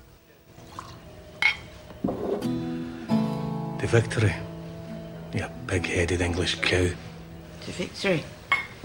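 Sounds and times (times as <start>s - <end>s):
whiskey glasses clinking in a toast: 0.8s - 2.5s, 8.5s - 8.8s
speech: 3.9s - 4.5s, 5.3s - 8.8s.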